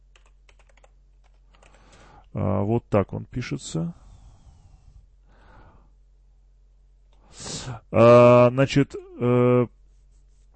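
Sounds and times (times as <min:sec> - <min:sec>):
typing a course name on a computer keyboard: 0:00.1 - 0:02.1
speech: 0:02.3 - 0:04.0, 0:07.9 - 0:09.8.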